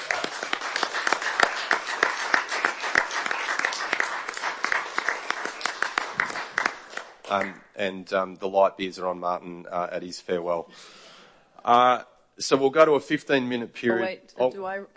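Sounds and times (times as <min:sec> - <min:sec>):
small group applauding: 0:00.0 - 0:07.6
speech: 0:07.3 - 0:11.0, 0:11.6 - 0:14.9.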